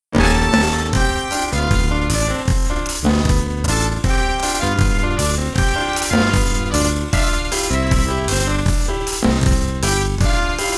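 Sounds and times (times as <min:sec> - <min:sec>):
jazz music: 0:00.1 - 0:10.7.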